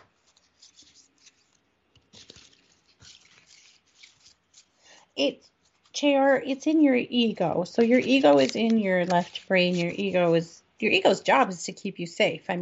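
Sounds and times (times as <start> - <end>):
energy oracle cards being shuffled and drawn: 0.0 - 4.8, 7.8 - 10.4
speech: 5.2 - 12.6.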